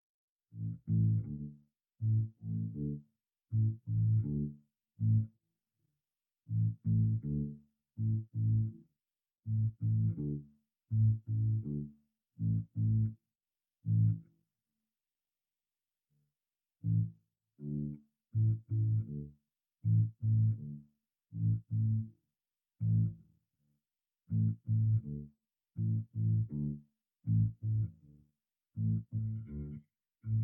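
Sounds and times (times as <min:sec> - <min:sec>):
bass: 0:00.5 - 0:05.4, 0:06.5 - 0:13.2, 0:13.8 - 0:14.4, 0:16.8 - 0:22.2, 0:22.8 - 0:23.4, 0:24.3 - 0:30.4.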